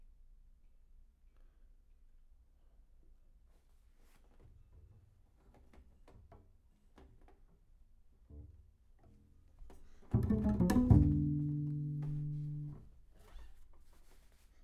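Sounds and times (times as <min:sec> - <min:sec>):
bass: 0:08.5 - 0:12.9.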